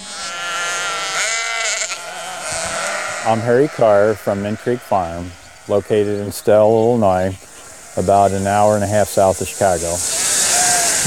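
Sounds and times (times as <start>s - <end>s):
sheep bleating: 0.0s - 7.2s, 10.0s - 11.0s
speech: 3.2s - 10.1s.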